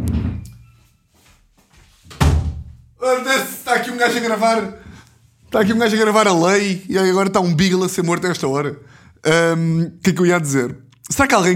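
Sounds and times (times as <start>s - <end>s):
door being closed: 2.1s - 2.7s
speech: 3.1s - 4.8s, 5.5s - 11.5s.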